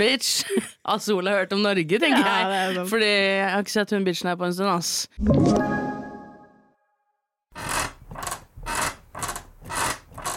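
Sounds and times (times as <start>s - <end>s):
speech: 0.0s - 5.9s
creaking bed: 7.5s - 10.3s.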